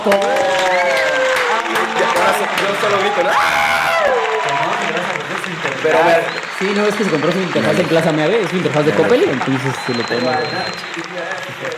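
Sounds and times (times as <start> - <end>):
speech: 0.0 - 0.5, 2.7 - 4.4, 5.8 - 11.7
fake applause sound effect: 0.0 - 11.7.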